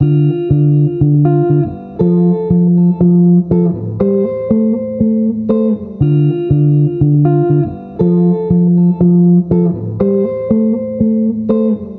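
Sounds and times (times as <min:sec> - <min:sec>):
guitar: 0:00.0 - 0:11.9.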